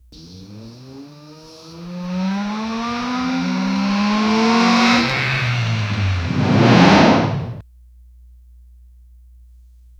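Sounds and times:
1972 Chevy Nova engine starting: 0:00.2 - 0:07.6.

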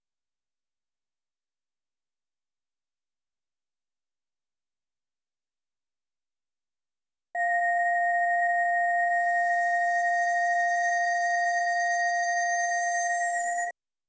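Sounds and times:
digital file loading sound: 0:07.4 - 0:13.7.

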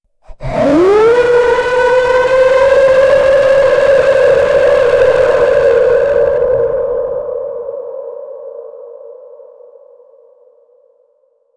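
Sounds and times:
black hole space sound: 0:00.4 - 0:07.7.

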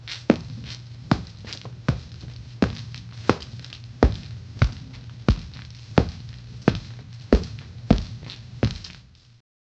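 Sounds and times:
light rhythmic foot impacts in a gym: 0:00.0 - 0:09.2.

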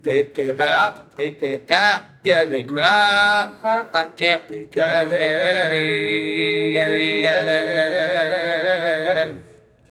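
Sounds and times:
vedic chanting: 0:00.0 - 0:09.9.

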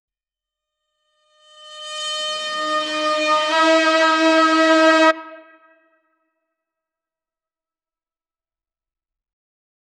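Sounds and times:
royal trumpet fanfare: 0:02.5 - 0:05.5.

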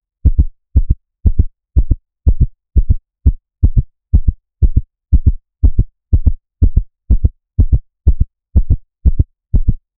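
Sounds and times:
heartbeat: 0:00.2 - 0:09.9.

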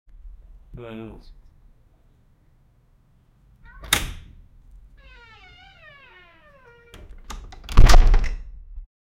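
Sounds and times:
leisure door opening: 0:03.6 - 0:08.5.

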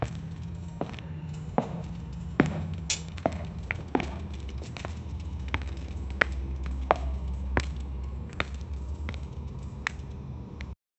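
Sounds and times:
cyborg walking on concrete: 0:00.0 - 0:10.7.

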